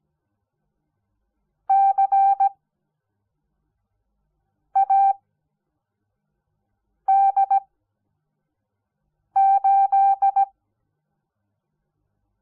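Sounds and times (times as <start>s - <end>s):
morse code beeps: 1.7s - 2.5s, 4.8s - 5.2s, 7.1s - 7.6s, 9.4s - 10.5s.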